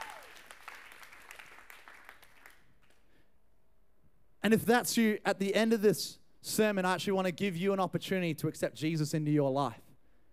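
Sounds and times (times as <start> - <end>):
audience clapping: 0.0 - 3.0
speech: 4.4 - 9.8.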